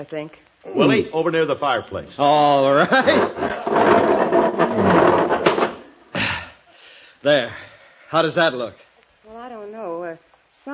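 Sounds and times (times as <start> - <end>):
speech: 0.0 - 4.5, 7.2 - 8.9
love seat being pushed across floor: 2.9 - 5.9.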